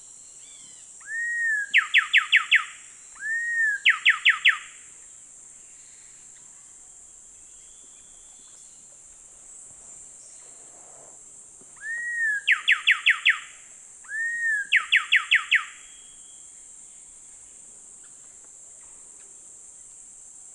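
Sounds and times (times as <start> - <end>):
coraya wren Pheugopedius coraya duet in South America Eastern Lowlands: 0.4 - 4.8, 11.8 - 16.2.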